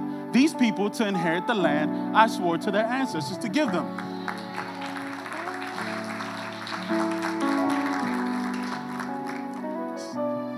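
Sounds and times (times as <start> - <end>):
speech: 0.3 - 4.4
audience clapping: 3.7 - 10.1.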